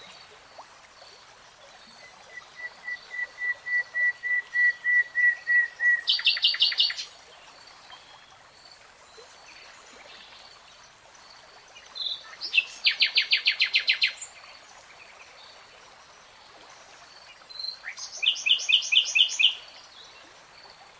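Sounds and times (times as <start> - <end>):
Nightingale song: 1.7 - 7.2, 11.8 - 15.5, 17.2 - 20.2.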